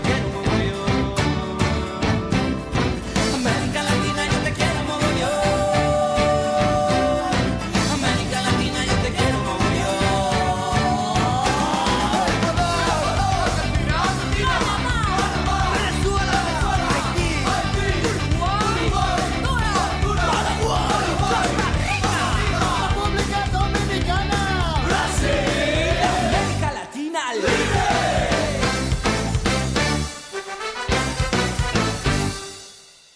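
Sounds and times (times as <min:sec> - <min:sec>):
driving drums: 0:00.0 - 0:26.8, 0:27.4 - 0:33.1
Spanish band's song recording playing: 0:00.0 - 0:33.1
gritty shouted vocals: 0:03.2 - 0:29.0.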